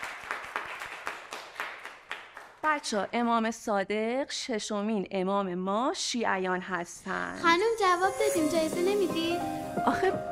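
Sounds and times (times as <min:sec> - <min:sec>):
children clapping for themselves in a religious studies class: 0:00.0 - 0:02.8
speech: 0:02.6 - 0:10.3.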